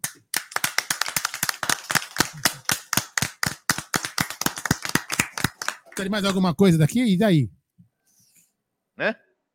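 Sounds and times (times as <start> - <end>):
applause sound effect: 0.0 - 6.7
speech: 2.3 - 2.8, 6.0 - 7.6, 9.0 - 9.2.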